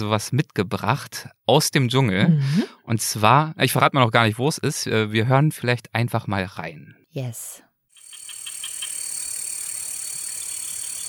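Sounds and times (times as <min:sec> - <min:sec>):
speech: 0:00.0 - 0:07.7
rainforest crickets and cicadas chirping: 0:08.0 - 0:11.0.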